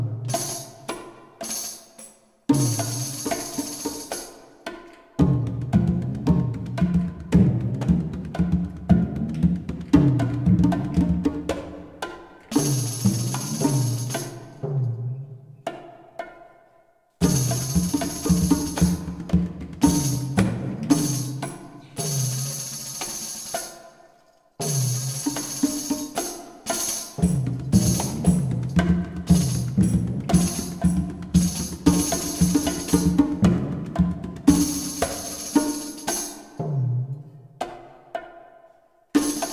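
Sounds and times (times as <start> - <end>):
tabla playing: 2.5 - 14.8, 17.2 - 24.0, 24.6 - 36.8, 39.2 - 39.5.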